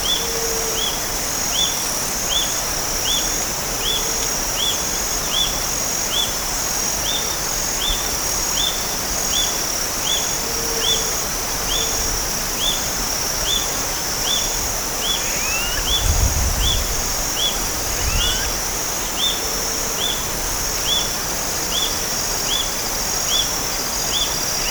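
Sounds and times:
high insect drone: 0:00.0 - 0:24.6
short high bird calls: 0:15.0 - 0:19.3.

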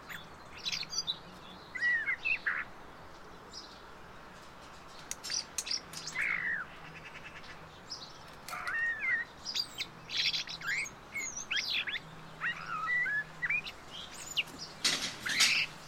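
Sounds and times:
common blackbird whistled song: 0:00.0 - 0:02.7, 0:07.9 - 0:15.7.

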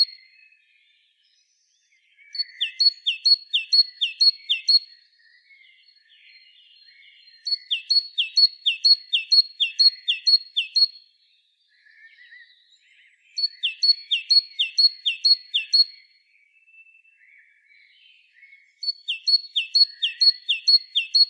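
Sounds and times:
great tit singing: 0:02.2 - 0:04.9, 0:05.9 - 0:11.0, 0:11.8 - 0:16.1, 0:17.8 - 0:21.2.

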